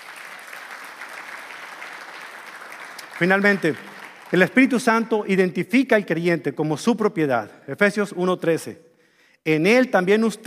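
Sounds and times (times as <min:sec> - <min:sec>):
loud audience applause: 0:00.0 - 0:05.1
speech: 0:03.2 - 0:10.4.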